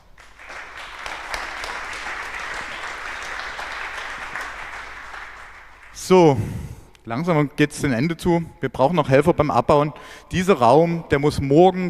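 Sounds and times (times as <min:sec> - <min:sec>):
crowd applause: 0:00.0 - 0:06.0
speech: 0:06.1 - 0:11.8.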